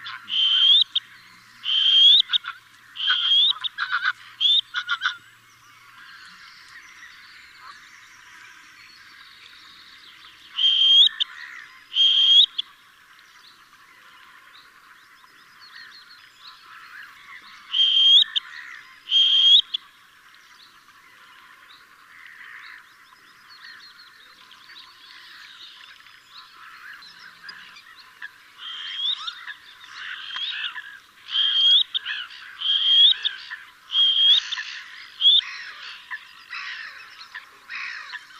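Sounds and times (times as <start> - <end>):
black-necked grebe calling: 0.0 - 38.3.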